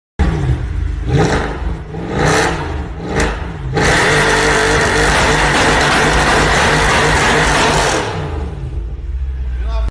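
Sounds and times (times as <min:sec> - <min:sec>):
Mercedes C63 exhaust sound: 0:00.2 - 0:09.8.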